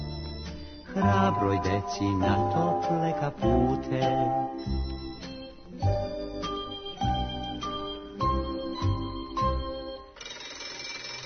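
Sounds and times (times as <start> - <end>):
bell chime ringing: 0.0 - 2.0, 4.6 - 11.2
speech: 1.0 - 6.0.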